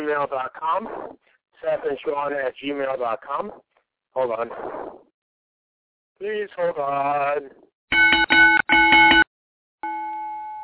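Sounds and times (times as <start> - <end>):
speech: 0.1 - 5.1, 6.2 - 8.3
bell: 7.9 - 10.6.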